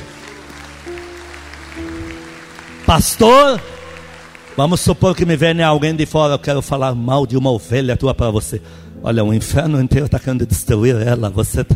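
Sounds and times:
audience applauding: 0.0 - 6.2
speech: 1.8 - 2.0, 2.9 - 3.8, 4.6 - 11.7.

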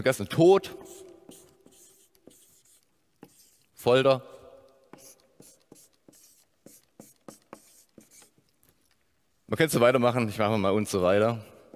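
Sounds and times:
speech: 0.0 - 1.1, 3.8 - 4.3, 9.5 - 11.5
pen scratching on paper: 0.7 - 3.8, 4.8 - 8.5.

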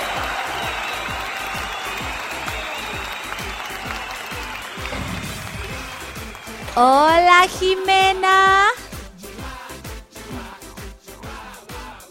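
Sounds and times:
audience applause: 0.0 - 8.6
speech: 6.8 - 8.7.

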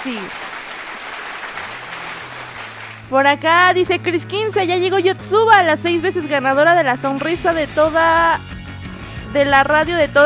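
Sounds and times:
speech: 0.0 - 0.6, 3.1 - 8.5, 9.3 - 10.2
applause: 0.0 - 3.2.

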